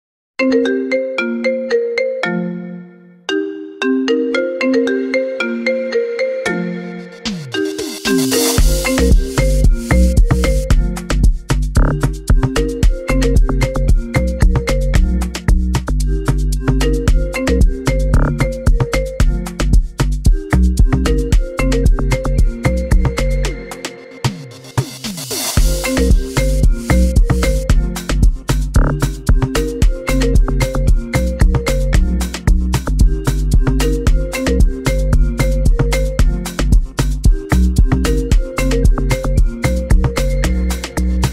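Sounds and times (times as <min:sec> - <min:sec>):
iPhone ringtone amapiano remix: 0:00.4 - 0:41.3.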